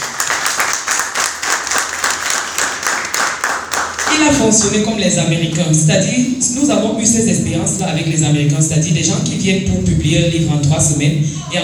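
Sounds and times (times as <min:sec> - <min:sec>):
audience applause: 0:00.0 - 0:04.8
speech: 0:04.2 - 0:11.6.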